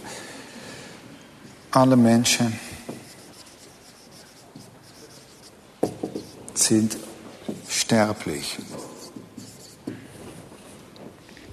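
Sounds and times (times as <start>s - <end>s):
handwriting scratching: 1.5s - 10.4s
speech: 1.7s - 2.6s, 6.7s - 7.1s, 7.9s - 8.9s.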